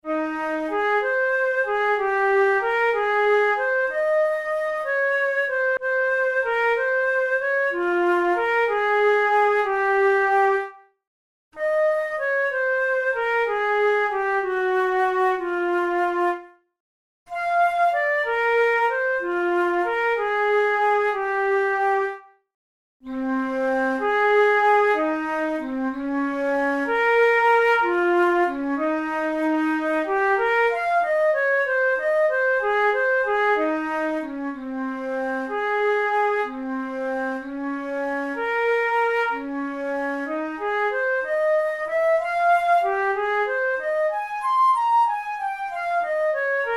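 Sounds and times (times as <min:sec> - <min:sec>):
studies for the Boehm flute: 0:00.0 - 0:11.0, 0:11.6 - 0:16.7, 0:17.3 - 0:22.4, 0:23.0 - 0:46.7.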